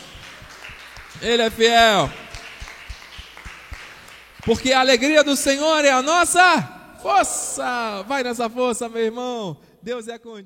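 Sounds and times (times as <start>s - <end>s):
crowd clapping in rhythm: 0.0s - 5.3s
speech: 1.2s - 2.2s, 4.4s - 10.4s.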